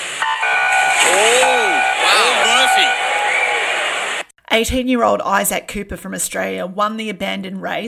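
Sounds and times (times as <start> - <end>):
swimming race start beep: 0.2 - 4.2
speech: 4.5 - 7.8.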